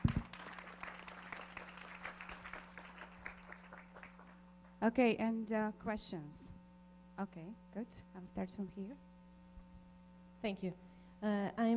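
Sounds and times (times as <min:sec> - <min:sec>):
audience applause: 0:00.0 - 0:04.4
speech: 0:04.8 - 0:06.6, 0:07.2 - 0:09.1, 0:10.4 - 0:11.7.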